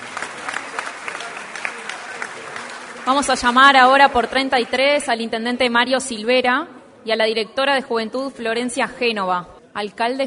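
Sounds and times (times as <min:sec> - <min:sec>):
audience applause for the Rocha department at a ceremony: 0:00.0 - 0:04.6
crowd noise: 0:00.0 - 0:10.2
speech: 0:03.1 - 0:10.2.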